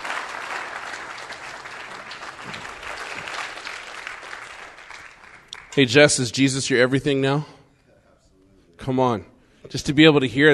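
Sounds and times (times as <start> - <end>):
audience applause: 0.0 - 5.8
speech: 5.8 - 7.6, 8.8 - 10.5.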